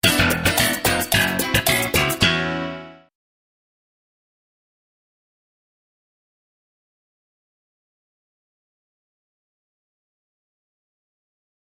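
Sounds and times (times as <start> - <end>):
sitcom bass riff: 0.0 - 3.1.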